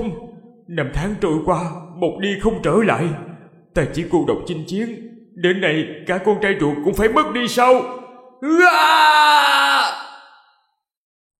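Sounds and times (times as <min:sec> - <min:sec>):
speech: 0:00.0 - 0:09.6
long anguished scream: 0:08.3 - 0:10.6.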